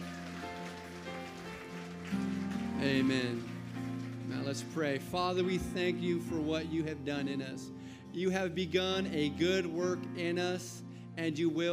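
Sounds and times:
audience applauding: 0.0s - 5.4s
speech: 2.8s - 3.5s, 4.4s - 11.7s.

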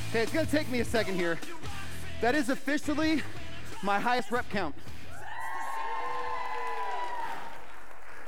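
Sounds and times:
speech: 0.1s - 4.8s
crowd applause: 5.4s - 8.2s.

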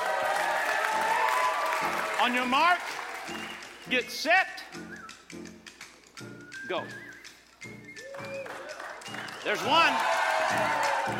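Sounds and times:
audience cheering: 0.0s - 3.9s, 8.0s - 11.1s
speech: 2.2s - 5.5s, 6.7s - 7.0s, 9.4s - 11.1s.

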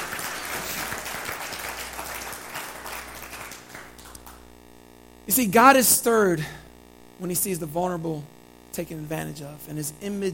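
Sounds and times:
audience clapping awkwardly: 0.0s - 4.6s
speech: 5.3s - 6.6s, 7.2s - 10.3s.

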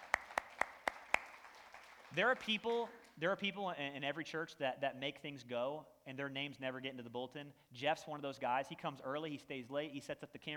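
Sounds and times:
audience applause: 0.0s - 3.1s
speech: 2.1s - 10.5s.

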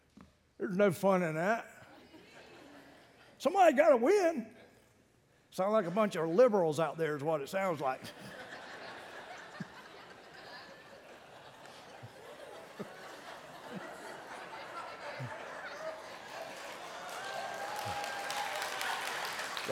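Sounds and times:
speech: 0.6s - 1.7s, 3.4s - 4.6s, 5.5s - 8.4s
chuckles and murmurs: 8.0s - 16.5s
thin scattered applause from a small audience: 14.2s - 19.7s.

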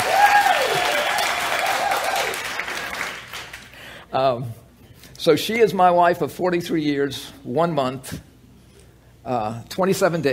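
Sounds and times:
audience applause: 0.0s - 3.8s
speech: 4.1s - 4.6s, 5.2s - 8.3s, 9.2s - 10.3s.

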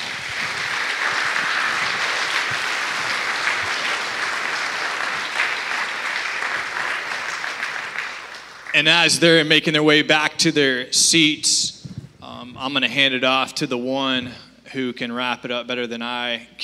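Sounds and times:
audience applause: 0.0s - 9.2s
speech: 8.8s - 11.7s, 12.6s - 16.6s.

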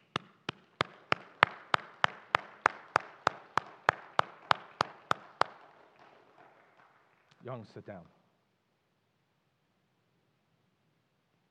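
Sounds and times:
audience clapping in unison: 0.0s - 8.0s
speech: 7.4s - 8.2s.

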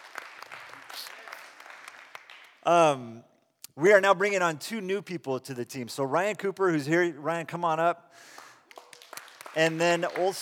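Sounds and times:
audience clapping: 0.0s - 2.7s, 8.3s - 10.3s
speech: 2.6s - 8.4s, 9.6s - 10.3s.

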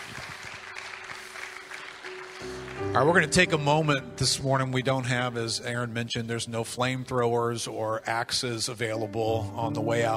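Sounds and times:
crowd clapping: 0.0s - 3.5s
speech: 3.0s - 10.1s.

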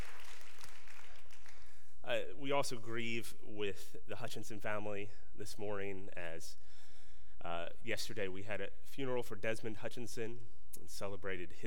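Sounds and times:
audience clapping: 0.0s - 1.8s
speech: 2.1s - 6.8s, 7.4s - 11.6s.

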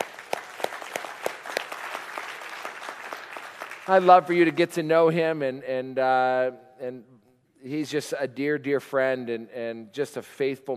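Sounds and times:
audience clapping: 0.0s - 4.5s
speech: 3.9s - 10.7s.

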